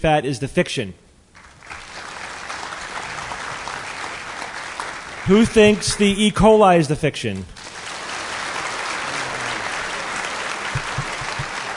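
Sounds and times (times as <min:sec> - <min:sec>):
speech: 0:00.0 - 0:01.0, 0:05.3 - 0:07.6
audience applause: 0:01.4 - 0:05.4, 0:07.6 - 0:11.7.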